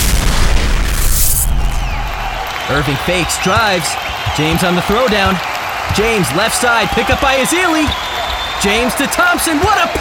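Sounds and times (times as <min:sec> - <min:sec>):
heavy weapons firing at the Bellerophon: 0:00.0 - 0:02.4
speech: 0:02.7 - 0:08.0, 0:08.6 - 0:09.9.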